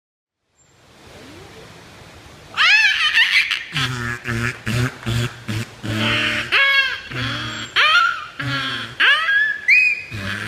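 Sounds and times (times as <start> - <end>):
beluga whale squealing: 2.6 - 3.9, 6.0 - 10.4.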